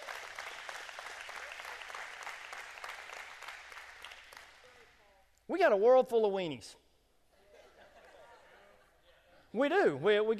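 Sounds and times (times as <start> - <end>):
audience hand clap applause: 0.0 - 5.1
speech: 5.5 - 6.8, 9.5 - 10.3
laughter: 7.3 - 9.4.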